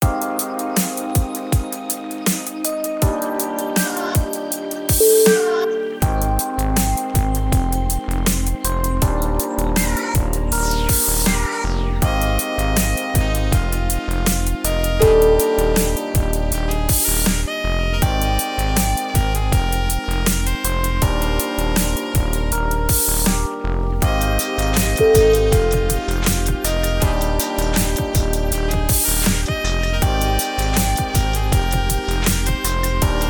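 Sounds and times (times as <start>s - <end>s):
chilled saxophone: 0.0s - 33.2s.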